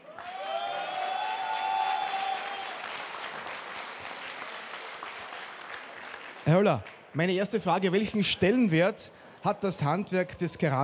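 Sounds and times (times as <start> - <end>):
audience applauding: 0.0 - 8.2
speech: 6.5 - 10.8.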